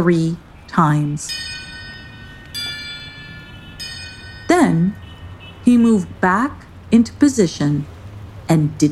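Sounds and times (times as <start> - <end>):
speech: 0.0 - 1.5, 5.7 - 8.9
large bell clanging: 1.2 - 5.9.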